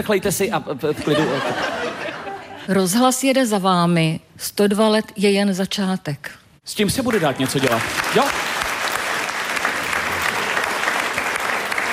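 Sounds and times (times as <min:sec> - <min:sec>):
speech: 0:00.0 - 0:02.0, 0:02.7 - 0:08.5
laughter: 0:00.9 - 0:02.7
two people clapping half-heartedly: 0:07.0 - 0:11.9.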